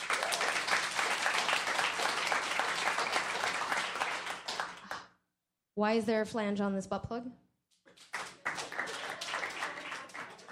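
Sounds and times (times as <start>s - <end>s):
live audience clapping: 0.0s - 5.0s, 7.9s - 10.5s
speech: 5.8s - 7.5s.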